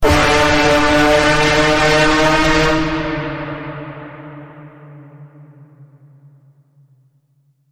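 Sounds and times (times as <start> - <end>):
note bend on D: 0.0 - 3.7.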